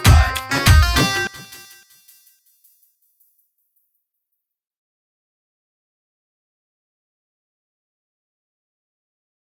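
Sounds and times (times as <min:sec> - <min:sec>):
instrumental music: 0:00.0 - 0:03.4.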